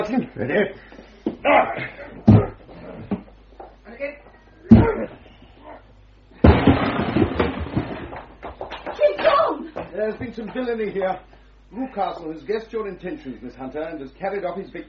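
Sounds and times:
speech: 0:00.0 - 0:02.5, 0:04.0 - 0:05.3, 0:10.0 - 0:14.8
door being broken down with shoulders: 0:06.4 - 0:08.4.

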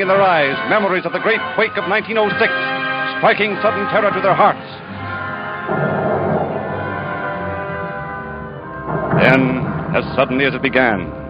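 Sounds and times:
speech: 0:00.0 - 0:04.9, 0:09.3 - 0:11.2
bomb explosion in a church: 0:05.7 - 0:10.6.

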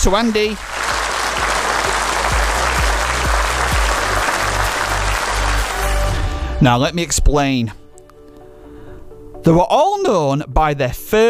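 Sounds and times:
speech: 0:00.0 - 0:00.8, 0:06.6 - 0:07.8, 0:09.4 - 0:11.2
round of applause: 0:00.0 - 0:06.3.

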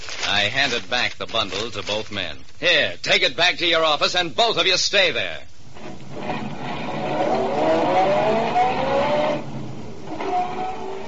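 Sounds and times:
speech: 0:00.4 - 0:06.4
car driving off: 0:05.8 - 0:11.0.

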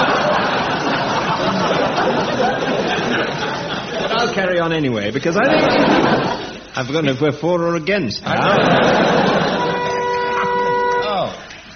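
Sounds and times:
laughter: 0:00.0 - 0:04.5, 0:05.4 - 0:06.8, 0:08.2 - 0:11.0
speech: 0:04.4 - 0:09.0
quiz buzzer: 0:09.4 - 0:11.3.

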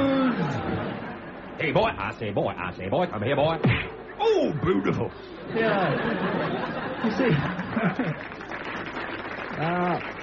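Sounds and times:
laughter: 0:00.1 - 0:01.5, 0:04.6 - 0:08.5
speech: 0:01.6 - 0:08.5, 0:09.6 - 0:10.2
audience applause: 0:06.3 - 0:10.2.

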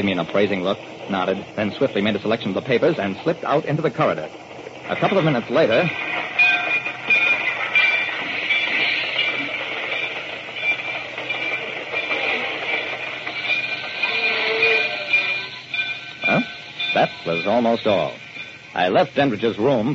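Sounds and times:
speech: 0:00.0 - 0:06.4, 0:17.0 - 0:18.2, 0:18.8 - 0:19.9
train running on rails: 0:00.0 - 0:19.9.

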